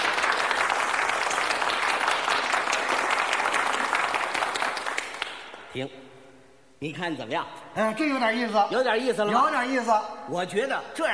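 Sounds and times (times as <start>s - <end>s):
crowd applause: 0.0s - 5.4s
speech: 5.8s - 6.0s, 6.8s - 11.1s.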